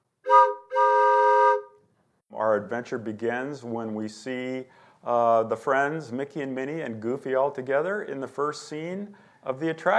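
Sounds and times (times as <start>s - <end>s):
1928 old steamboat whistle blasts: 0.2s - 1.8s
speech: 2.4s - 9.9s.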